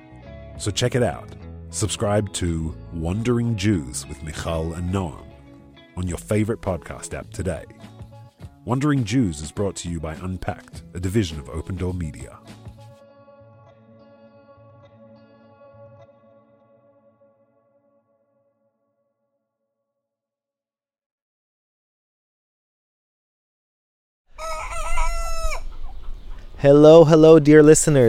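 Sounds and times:
speech: 0.6s - 5.3s, 6.0s - 7.9s, 8.6s - 12.4s, 26.6s - 28.0s
rooster crowing: 24.3s - 25.9s.

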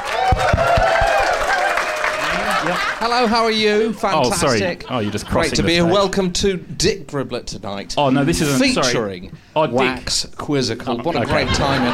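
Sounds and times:
audience applause as a host is welcomed onto a stage: 0.0s - 3.6s
laughter: 1.3s - 6.1s, 11.0s - 11.9s
speech: 2.7s - 11.9s.

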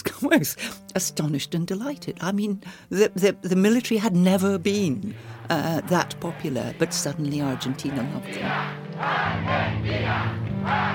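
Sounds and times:
speech: 0.3s - 10.9s
massive archival crowd in Buenos Aires cheering General Galtieri: 6.3s - 10.9s.

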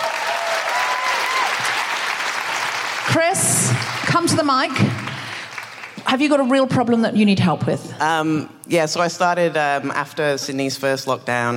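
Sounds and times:
audience applause: 0.0s - 6.3s
speech: 3.2s - 5.0s, 6.1s - 11.5s.

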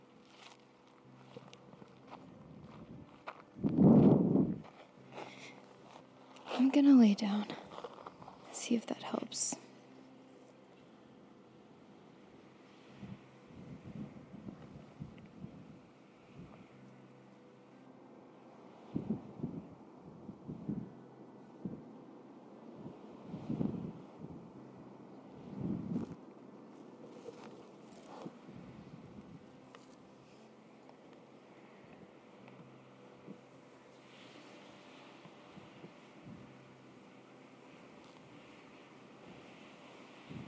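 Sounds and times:
wind blowing across the microphone: 2.4s - 4.8s, 12.9s - 16.7s, 18.8s - 29.5s, 39.2s - 40.4s
speech: 6.7s - 7.6s, 8.6s - 9.6s.

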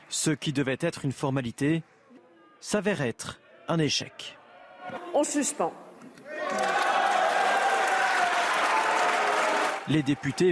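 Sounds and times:
speech: 0.1s - 2.0s, 2.6s - 5.8s, 9.9s - 10.5s
applause in a parliament chamber: 6.3s - 10.5s.

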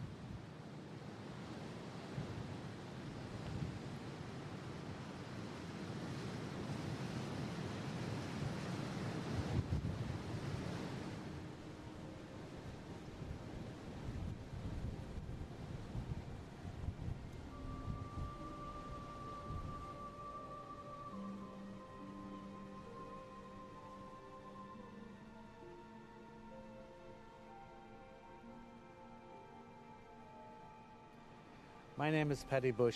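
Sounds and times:
very strong winds blowing between a narrow gap: 0.0s - 22.9s
ocean: 0.0s - 32.9s
speech: 32.0s - 32.9s.

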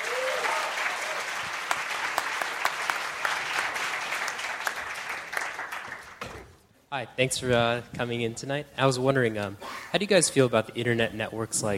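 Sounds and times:
audience applause: 0.0s - 6.5s
speech: 6.9s - 11.7s.

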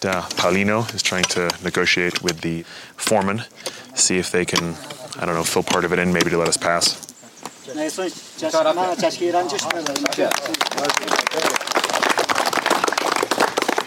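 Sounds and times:
speech: 0.0s - 7.1s, 7.7s - 11.6s
several voices talking over each other: 0.0s - 13.8s
group of people clapping: 9.0s - 13.8s.

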